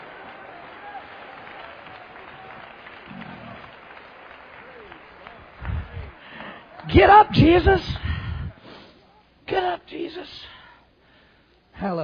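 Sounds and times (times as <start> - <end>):
audience clapping hands: 0.0 - 8.6
speech: 6.9 - 8.0, 9.5 - 10.5, 11.8 - 12.0.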